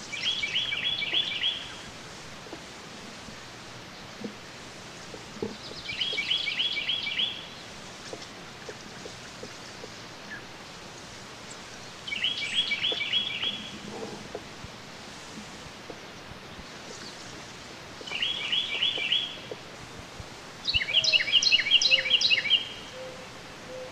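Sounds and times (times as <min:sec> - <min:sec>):
Carolina wren song: 0:00.0 - 0:01.9, 0:05.3 - 0:08.2, 0:08.9 - 0:13.8, 0:16.0 - 0:19.6, 0:20.6 - 0:23.9.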